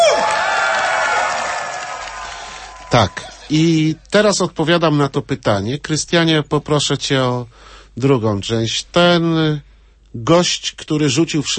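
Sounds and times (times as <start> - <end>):
quick falling shout: 0.0 - 3.0
young crowd in a tent clapping and cheering loudly: 0.0 - 3.5
speech: 2.9 - 11.5.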